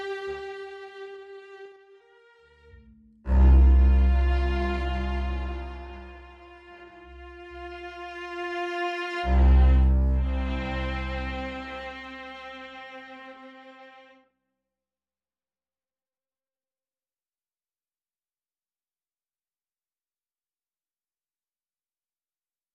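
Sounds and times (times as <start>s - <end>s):
strings: 0.0s - 14.2s.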